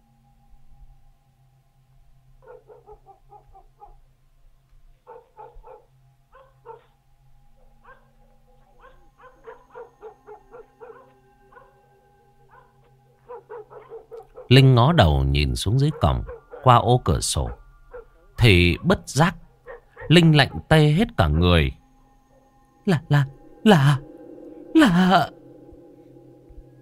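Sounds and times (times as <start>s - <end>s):
yellow dog barking outside: 2.4s - 4.0s, 5.0s - 6.9s, 7.6s - 11.8s, 12.5s - 14.6s, 15.7s - 16.8s, 17.4s - 19.0s, 19.6s - 20.8s
speech: 14.5s - 17.6s, 18.4s - 19.4s, 20.1s - 21.8s, 22.9s - 24.0s, 24.8s - 25.4s.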